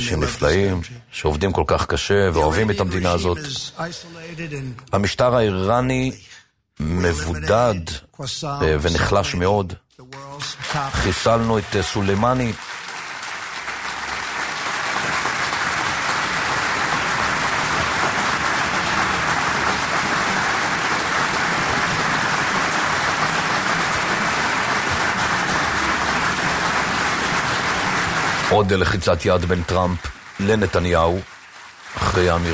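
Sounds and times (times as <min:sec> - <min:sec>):
speech: 0:00.0 - 0:12.7, 0:28.5 - 0:31.3, 0:31.9 - 0:32.5
applause in the briefing room: 0:10.1 - 0:32.5.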